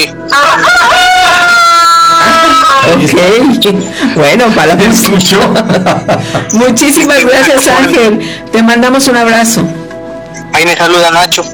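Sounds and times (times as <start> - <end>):
speech: 0.0 - 0.6, 2.9 - 9.8, 10.6 - 11.5
roosters crowing at night on a ranch: 0.3 - 3.0
laughter: 2.2 - 8.2.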